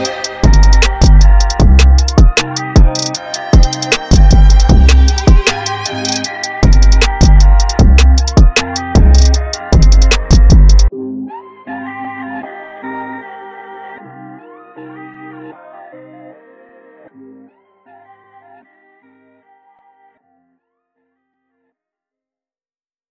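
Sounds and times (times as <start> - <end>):
fast chill instrumental trap beat: 0.0 - 10.9.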